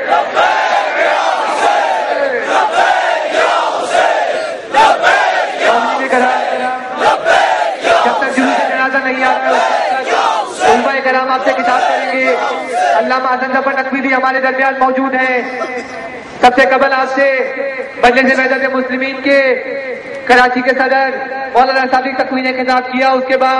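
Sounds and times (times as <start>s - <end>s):
large crowd at a religious majlis gathering chanting a slogan in unison: 0.0s - 13.2s
speech: 11.4s - 23.5s.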